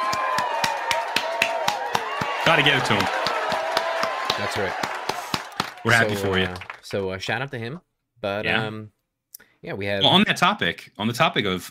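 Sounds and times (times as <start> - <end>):
studio audience clapping: 0.0 - 7.3
speech: 2.5 - 3.2, 4.4 - 4.9, 5.8 - 9.0, 9.6 - 11.6.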